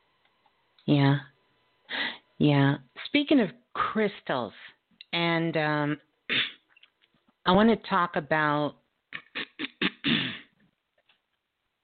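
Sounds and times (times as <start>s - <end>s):
quiet breathing: 1.8s - 2.4s
speech: 2.4s - 6.1s, 7.4s - 8.8s
person clearing throat: 6.3s - 6.6s, 9.2s - 10.6s.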